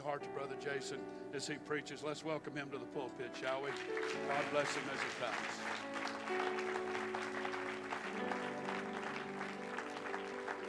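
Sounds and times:
speech: 0.0s - 6.8s
audience clapping: 3.5s - 10.6s.

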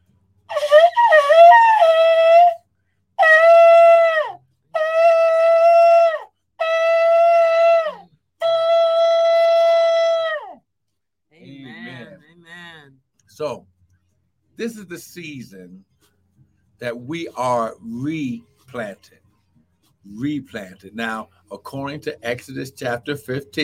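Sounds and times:
shofar being blown: 0.5s - 10.6s
speech: 14.7s - 15.9s, 16.8s - 19.2s, 20.1s - 23.6s.

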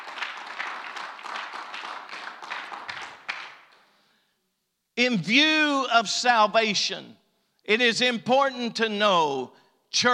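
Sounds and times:
audience hand clapping: 0.0s - 4.0s
speech: 5.0s - 10.1s.

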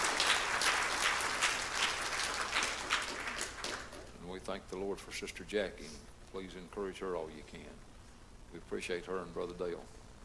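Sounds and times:
audience applause: 0.0s - 4.1s
speech: 4.5s - 7.9s, 8.5s - 10.0s.

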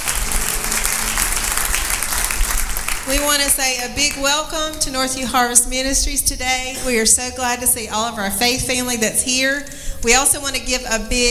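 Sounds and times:
church congregation at Northview Harvest Ministries applauding: 0.0s - 4.2s
speech: 3.1s - 11.2s.

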